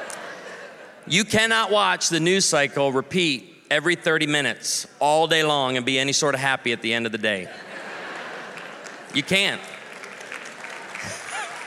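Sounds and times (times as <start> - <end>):
laughter: 0.0 - 1.2, 7.4 - 11.6
speech: 1.0 - 7.7, 9.1 - 9.7
people clapping: 8.1 - 11.6.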